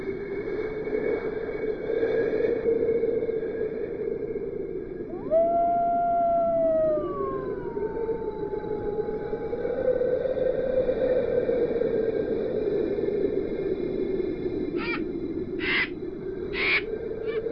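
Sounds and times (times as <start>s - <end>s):
wilderness ambience: 0.1s - 17.5s.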